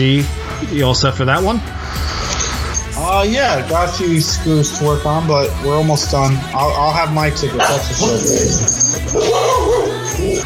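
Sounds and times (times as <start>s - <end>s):
speech: 0.0s - 2.0s, 3.1s - 10.4s
dogs barking: 7.5s - 10.4s.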